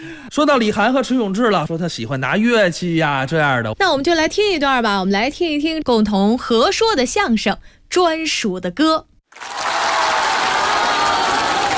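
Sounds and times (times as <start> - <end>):
speech: 0.1 - 9.6
theatre audience applause for crosstalk comedians: 9.3 - 11.7.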